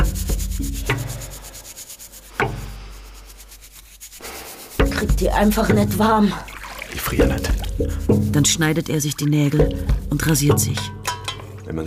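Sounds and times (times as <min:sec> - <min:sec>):
scrubbing a back with hot water: 0:00.0 - 0:10.4
speech: 0:05.2 - 0:06.5, 0:07.1 - 0:11.0, 0:11.7 - 0:11.8.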